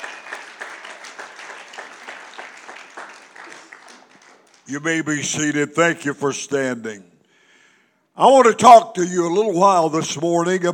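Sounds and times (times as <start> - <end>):
audience clapping: 0.0 - 5.2
speech: 4.7 - 7.1, 8.2 - 10.7.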